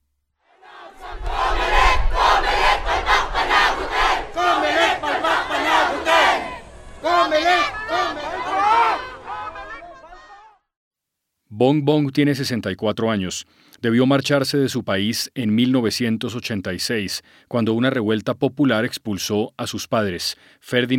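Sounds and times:
protest crowd shouting: 0.5s - 10.7s
speech: 11.6s - 20.9s.

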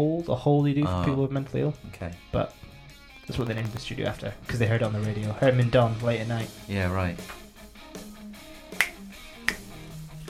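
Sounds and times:
speech: 0.0s - 2.7s, 3.3s - 7.4s
soft music with sustained low notes: 0.0s - 10.2s
finger snaps: 8.7s - 10.2s.

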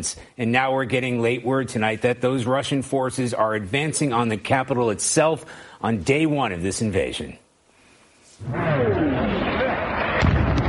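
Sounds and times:
speech: 0.0s - 7.4s, 8.4s - 9.4s
explosions in a war zone: 8.4s - 10.6s
faint descending whine: 8.4s - 10.6s.

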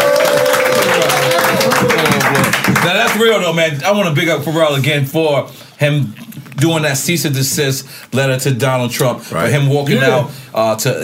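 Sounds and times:
audience applause at a comedy show: 0.0s - 3.3s
speech: 3.0s - 11.0s.

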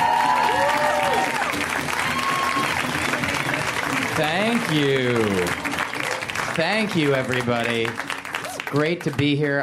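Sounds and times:
audience voices whooping: 0.0s - 3.6s, 8.4s - 8.7s
audience applause for a comedian at a live LA comedy show: 0.0s - 9.6s
speech: 4.2s - 5.7s, 6.6s - 8.1s, 8.7s - 9.6s.

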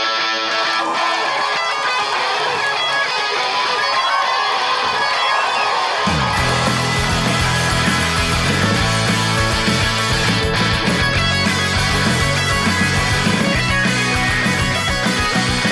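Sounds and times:
live audience applause: 0.2s - 15.7s.

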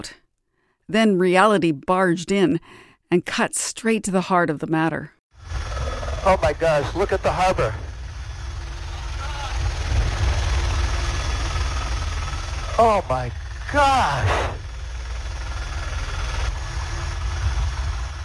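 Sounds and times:
speech: 0.0s - 0.2s, 0.9s - 7.8s, 12.8s - 14.5s
helicopter engine in flight: 5.4s - 18.2s.

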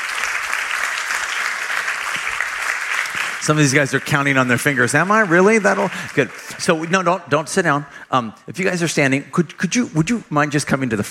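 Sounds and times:
audience applauding: 0.0s - 7.3s
speech: 3.4s - 11.0s.

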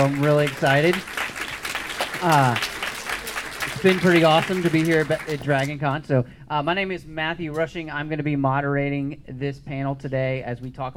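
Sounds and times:
speech: 0.0s - 1.2s, 2.2s - 2.7s, 3.8s - 10.9s
audience applause: 0.0s - 5.8s.

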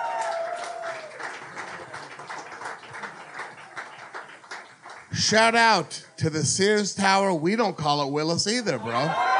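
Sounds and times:
audience clapping: 0.0s - 5.8s
speech: 5.1s - 9.3s.

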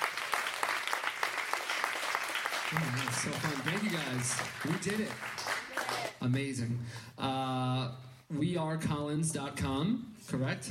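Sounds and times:
audience applause: 0.0s - 6.4s
speech: 2.7s - 5.5s, 6.2s - 10.6s.

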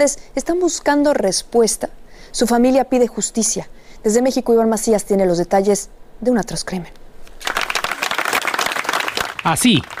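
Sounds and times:
speech: 0.0s - 7.0s, 9.4s - 9.9s
applause at a funeral: 7.4s - 9.9s.

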